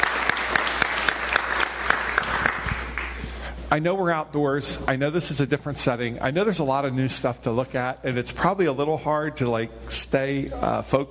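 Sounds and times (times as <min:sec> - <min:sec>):
outdoor audience applauding: 0:00.0 - 0:03.3
speech: 0:03.7 - 0:11.0.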